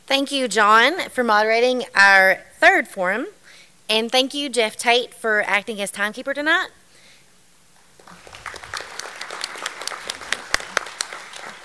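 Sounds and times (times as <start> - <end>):
speech: 0.1 - 6.8
audience applause: 8.0 - 11.6.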